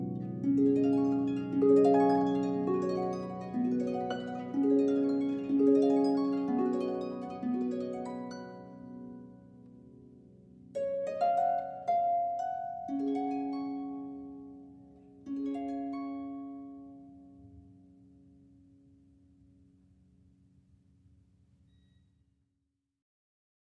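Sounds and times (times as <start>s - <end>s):
traditional Irish harp melody: 0.0s - 17.8s.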